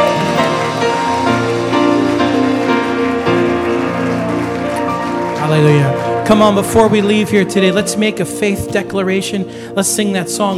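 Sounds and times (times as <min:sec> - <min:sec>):
audience clapping hands in praise: 0:00.0 - 0:07.4
speech: 0:05.6 - 0:10.5.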